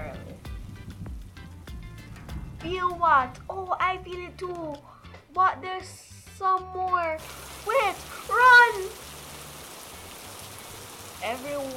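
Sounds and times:
speech: 2.6 - 9.0, 11.2 - 11.7
heavy rain shower: 7.2 - 11.7.

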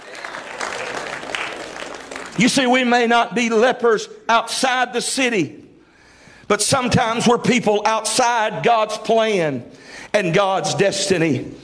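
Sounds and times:
crowd clapping hands: 0.0 - 2.9
speech: 2.4 - 5.6, 6.5 - 11.6.

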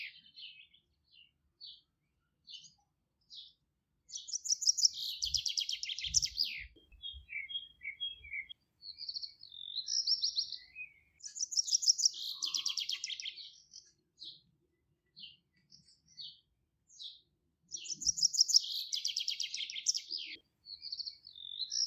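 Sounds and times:
bird trilling song in a countryside garden: 0.0 - 1.8, 4.1 - 14.4, 17.0 - 21.8.

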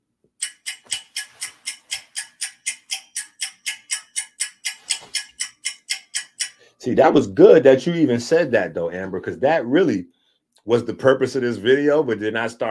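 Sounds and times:
clock ticking: 0.4 - 8.6
speech: 6.8 - 12.6.

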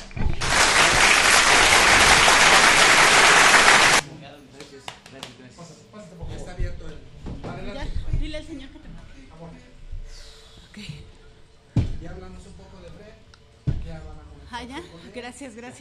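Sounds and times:
applause: 0.0 - 4.0.

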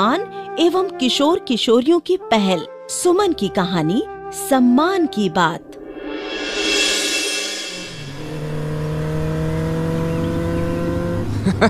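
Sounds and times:
speech: 0.0 - 5.7
Hero Honda motorcycle speeding by: 6.6 - 11.4
laughter: 11.4 - 11.6.

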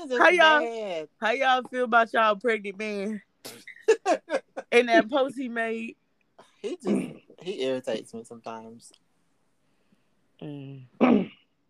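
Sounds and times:
speech: 0.0 - 6.0, 6.6 - 9.0, 10.4 - 11.4
throat clearing: 11.0 - 11.4.

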